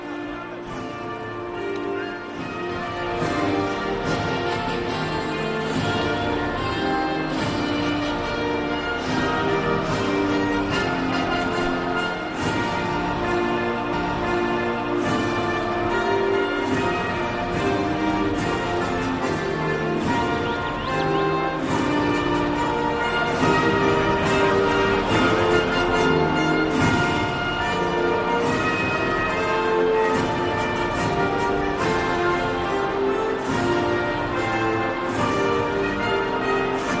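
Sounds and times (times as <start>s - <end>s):
national anthem over a stadium public address system before a football match: 0.0s - 36.9s.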